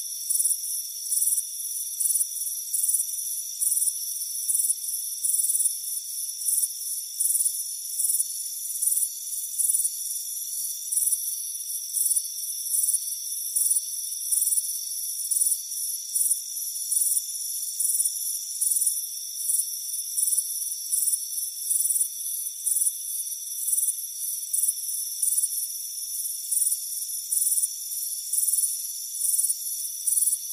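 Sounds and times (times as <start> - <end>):
continuous thin ringing insect hum: 0.0 - 30.5
cricket chirps: 0.0 - 30.5.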